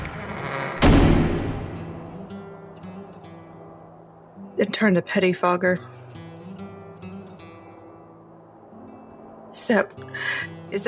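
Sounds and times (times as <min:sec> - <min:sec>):
door slamming shut: 0:00.8 - 0:01.8
speech: 0:04.6 - 0:06.0, 0:09.7 - 0:10.8.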